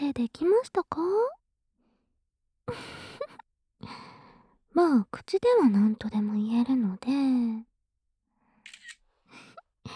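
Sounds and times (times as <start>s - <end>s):
speech: 0.1s - 1.4s, 2.7s - 3.0s, 4.8s - 7.7s
camera shutter taking photos: 8.7s - 9.0s.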